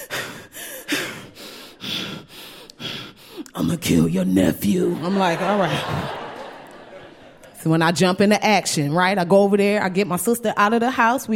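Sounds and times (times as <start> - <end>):
voice imitating heavy exasperated breathing: 0.0 - 3.5
speech: 3.6 - 6.2, 7.6 - 11.3
laughter: 4.8 - 7.7.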